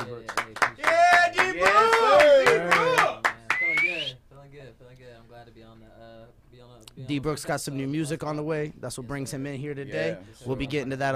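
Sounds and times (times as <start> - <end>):
people clapping: 0.0 - 4.2
voices calling out and cheering: 0.8 - 4.1
speech: 7.1 - 11.1.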